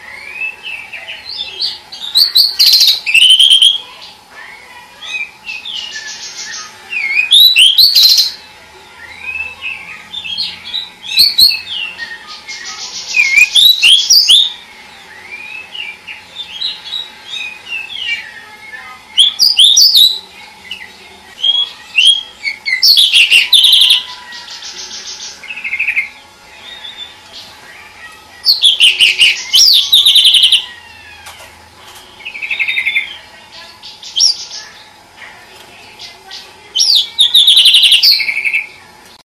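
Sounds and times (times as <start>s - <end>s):
Oriental magpie-robin whistling song: 0.0s - 3.8s, 5.0s - 8.4s, 9.0s - 20.2s, 21.4s - 27.2s, 28.4s - 30.8s, 36.8s - 38.8s.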